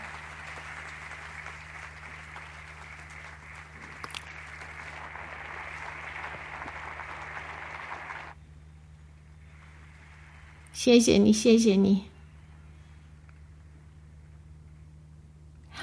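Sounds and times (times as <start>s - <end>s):
audience applause: 0.0s - 8.4s
low hum: 0.0s - 15.8s
speech: 10.8s - 12.1s.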